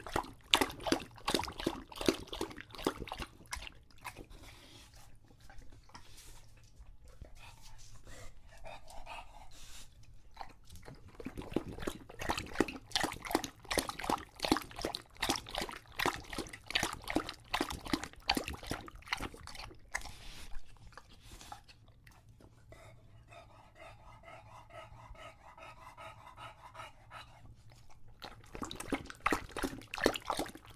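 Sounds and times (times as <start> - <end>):
English Bulldog lapping water: 0.0 - 7.3, 10.3 - 22.3, 27.8 - 30.7
English Bulldog panting: 0.0 - 30.7.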